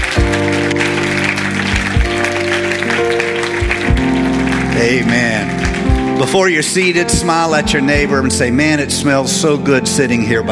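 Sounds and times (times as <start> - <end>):
audience applause: 0.0 - 7.4
speech: 6.2 - 10.4.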